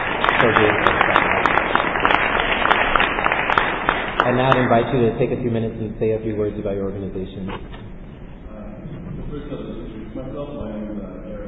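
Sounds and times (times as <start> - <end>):
round of applause: 0.0 - 5.2
speech: 4.2 - 7.8.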